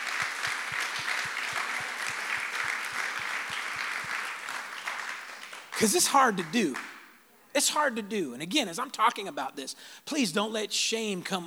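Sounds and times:
audience hand clapping applause: 0:00.0 - 0:07.0
speech: 0:05.8 - 0:06.9, 0:07.6 - 0:11.4.

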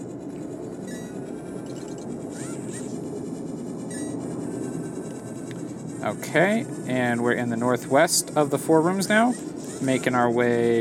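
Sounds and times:
faint high whistling tones: 0:00.0 - 0:10.7
loud jet aircraft roaring overhead: 0:00.0 - 0:10.7
speech: 0:06.0 - 0:10.7.

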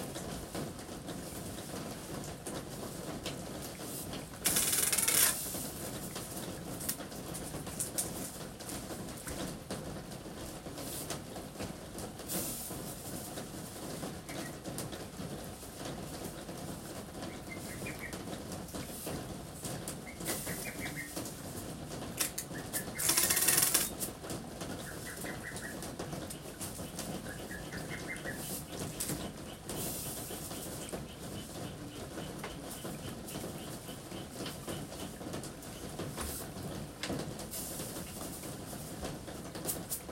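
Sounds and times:
rainy-season rain on a roof under the eaves: 0:00.0 - 0:40.1.

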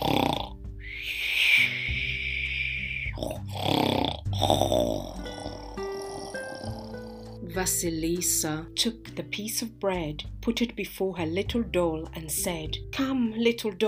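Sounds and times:
snoring: 0:00.0 - 0:07.4
speech: 0:07.6 - 0:13.8.

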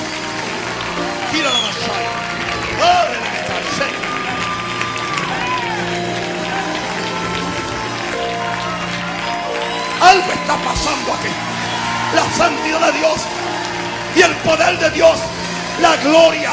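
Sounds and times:
church congregation applauding loudly: 0:00.0 - 0:16.5
speech: 0:10.1 - 0:11.5, 0:12.1 - 0:13.4, 0:14.2 - 0:16.5.

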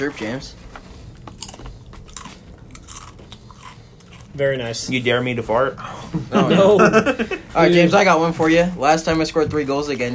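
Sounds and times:
speech: 0:00.0 - 0:00.8, 0:04.4 - 0:10.1
Cheez-It crackers being chewed: 0:00.7 - 0:04.9
laughter: 0:06.0 - 0:07.7.

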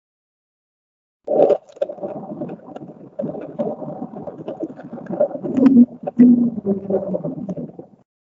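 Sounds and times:
low underwater ocean moan: 0:03.4 - 0:08.0.

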